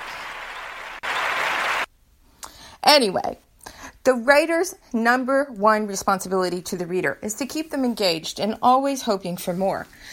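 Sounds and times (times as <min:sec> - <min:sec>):
one person clapping hands: 0:00.0 - 0:01.9
speech: 0:02.9 - 0:10.1.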